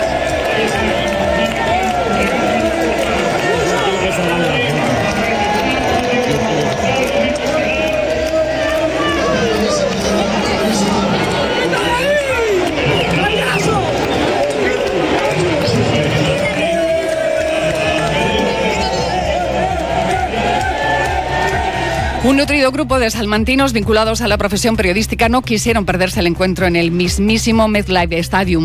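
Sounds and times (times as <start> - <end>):
horns blaring: 0.0 - 22.8
packed stadium crowd roaring in celebration of a goal: 0.0 - 23.5
speech: 22.4 - 28.6.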